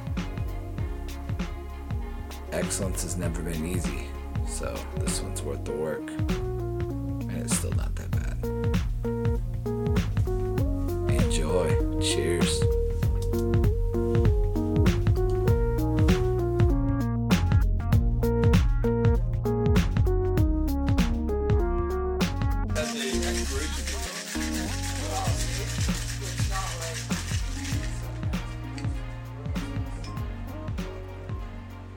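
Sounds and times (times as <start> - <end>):
rhythmic music: 0.0 - 31.9
speech: 2.5 - 6.4
cocktail being shaken with ice: 22.8 - 28.8.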